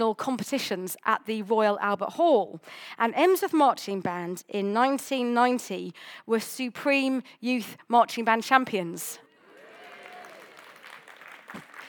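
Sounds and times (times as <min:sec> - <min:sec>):
speech: 0:00.0 - 0:09.2
audience applause: 0:09.4 - 0:11.8
voices cheering: 0:09.4 - 0:11.8
person whooping: 0:09.5 - 0:10.9.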